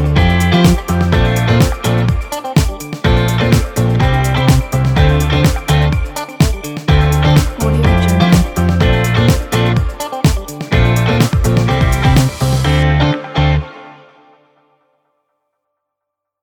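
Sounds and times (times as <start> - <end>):
fun funk groove: 0.0 - 12.9.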